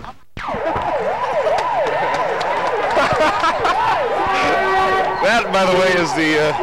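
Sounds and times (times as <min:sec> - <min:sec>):
busy street noise: 0:00.0 - 0:06.6
passing police car siren yelping: 0:00.4 - 0:06.6
laughter: 0:02.3 - 0:06.5
speech: 0:05.6 - 0:06.6.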